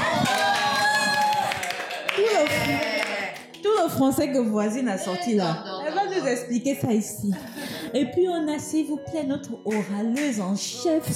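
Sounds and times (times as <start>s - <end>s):
audience applause: 0.0s - 3.6s
speech: 3.8s - 11.1s.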